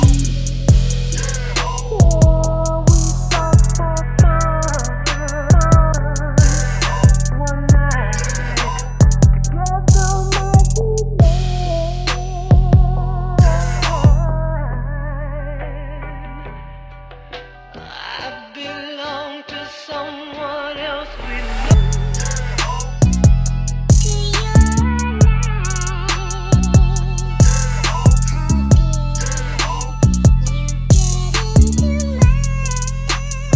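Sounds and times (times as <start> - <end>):
instrumental music: 0.0 - 14.6, 21.7 - 33.5.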